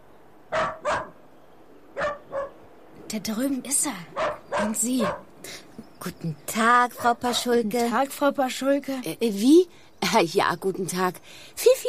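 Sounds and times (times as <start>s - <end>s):
dachshund barking: 0.5s - 1.2s, 2.0s - 2.6s, 4.2s - 5.3s, 7.0s - 7.6s
speech: 3.1s - 11.8s.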